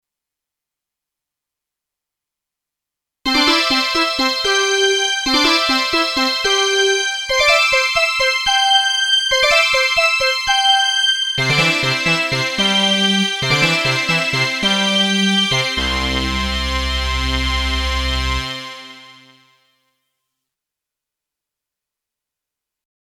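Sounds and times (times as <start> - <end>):
Streichfett string synthesizer: 3.3 - 19.4.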